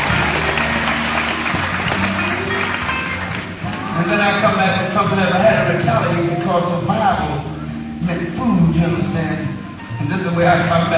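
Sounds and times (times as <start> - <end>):
audience applause: 0.0 - 4.8
speech: 4.7 - 10.9.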